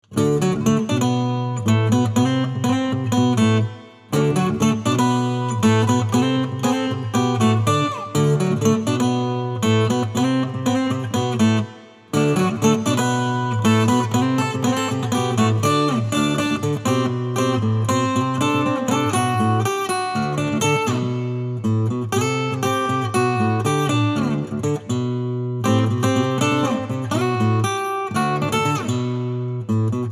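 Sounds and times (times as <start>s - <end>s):
acoustic music: 0.1s - 30.0s.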